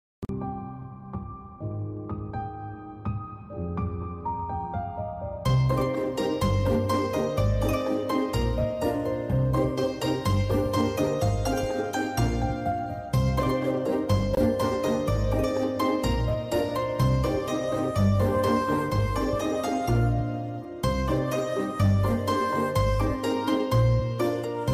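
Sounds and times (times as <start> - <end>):
romantic background music and ringtone: 0.3 - 24.7.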